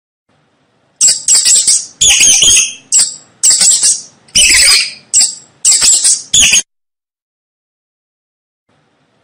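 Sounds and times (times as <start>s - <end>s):
mouse squeaking: 1.0s - 6.7s.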